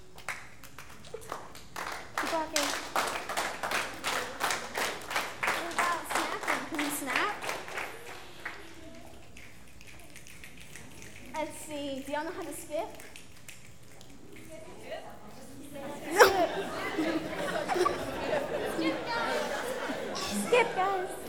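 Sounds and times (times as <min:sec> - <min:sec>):
people clapping hands: 0:00.0 - 0:14.5, 0:16.2 - 0:20.3
speech: 0:12.2 - 0:13.1
laughter: 0:15.8 - 0:21.2.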